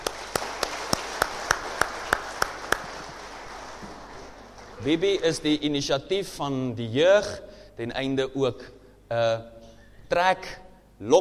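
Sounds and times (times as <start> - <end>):
audience clapping: 0.0 - 5.7
speech: 4.8 - 11.1.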